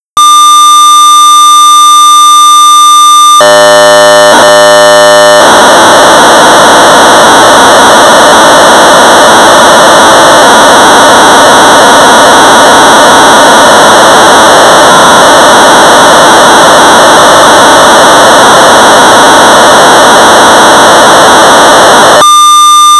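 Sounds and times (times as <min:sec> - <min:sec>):
1200 baud modem data tones: 0:00.2 - 0:22.9.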